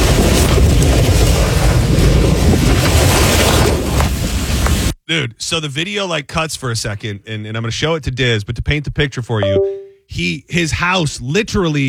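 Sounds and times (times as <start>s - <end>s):
tornado roaring: 0.0s - 4.8s
speech: 5.1s - 11.8s.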